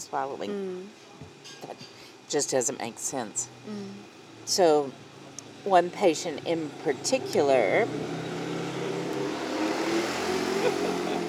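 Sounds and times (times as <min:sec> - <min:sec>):
speech: 0:00.1 - 0:08.3
quad bike driving past in village: 0:06.9 - 0:11.2
laughter: 0:10.4 - 0:11.2.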